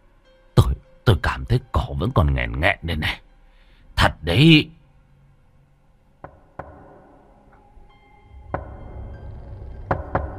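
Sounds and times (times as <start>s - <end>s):
speech: 1.4s - 3.2s, 4.0s - 4.8s
knocking on a door: 6.2s - 7.1s, 9.9s - 10.3s.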